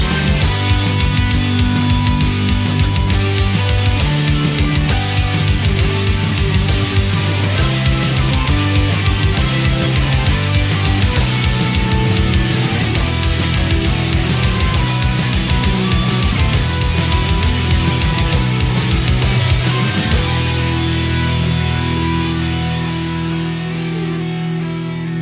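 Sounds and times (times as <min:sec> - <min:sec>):
metal music: 0:00.0 - 0:25.2.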